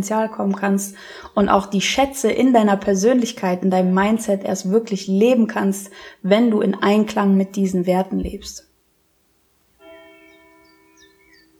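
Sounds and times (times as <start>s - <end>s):
speech: 0.0s - 8.7s
church bell striking: 9.8s - 11.5s
faint high chirps: 9.8s - 11.5s.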